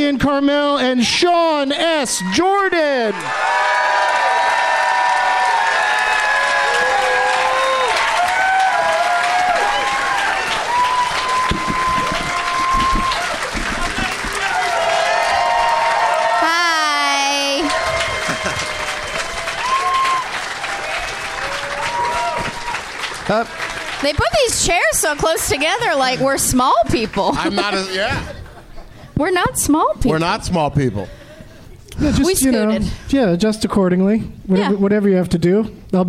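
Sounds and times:
speech: 0:00.0 - 0:04.0, 0:23.3 - 0:28.4, 0:29.2 - 0:31.2, 0:32.0 - 0:36.0
crowd applauding: 0:01.8 - 0:28.2
laughter: 0:18.0 - 0:19.1, 0:27.0 - 0:29.2.

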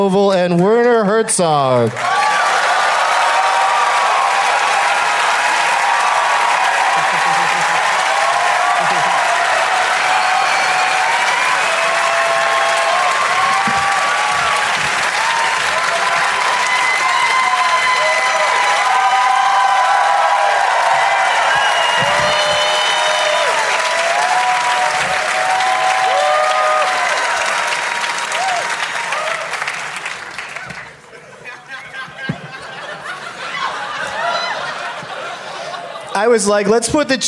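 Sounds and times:
speech: 0:00.0 - 0:02.4, 0:36.4 - 0:37.2
crowd applause welcoming guests: 0:01.6 - 0:36.6
scattered cheers and whoops: 0:02.0 - 0:29.8, 0:33.4 - 0:34.9
laughter: 0:06.5 - 0:09.9, 0:30.6 - 0:36.7.

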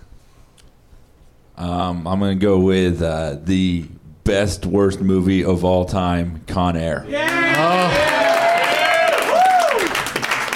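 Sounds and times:
speech: 0:01.6 - 0:08.0
person whooping: 0:07.1 - 0:10.0
audience applause and cheering for a mention of the film Con Air: 0:07.1 - 0:10.5.

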